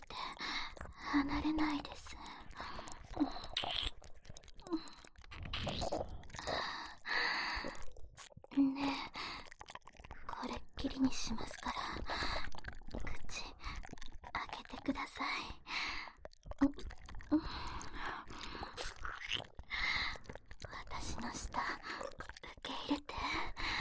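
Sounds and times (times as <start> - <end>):
standing sex from behind sounds: 0.0 - 14.0, 16.5 - 20.4
nipple licking: 0.0 - 23.7
oral sex sounds: 0.0 - 23.7
ear licking: 2.0 - 10.3, 11.5 - 14.8, 16.2 - 21.0
kissing: 3.5 - 4.0.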